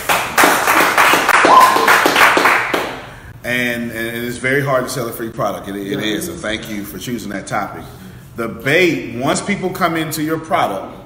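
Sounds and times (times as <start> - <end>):
audience clapping: 0.0 - 3.1
speech: 3.5 - 11.0.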